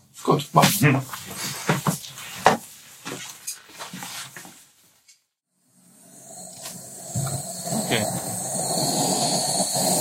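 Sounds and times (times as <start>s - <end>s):
speech: 0.2s - 1.4s
beekeeper's smoker being fired up: 5.6s - 9.9s.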